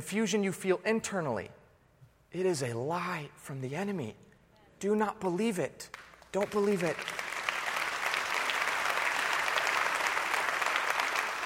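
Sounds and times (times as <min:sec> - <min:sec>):
speech: 0:00.0 - 0:01.6, 0:02.3 - 0:07.2
audience applause: 0:06.0 - 0:11.4.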